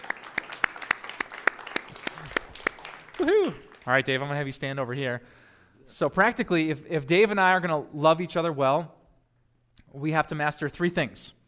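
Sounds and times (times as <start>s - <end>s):
audience applause: 0.0s - 4.0s
speech: 3.2s - 9.0s, 9.9s - 11.4s.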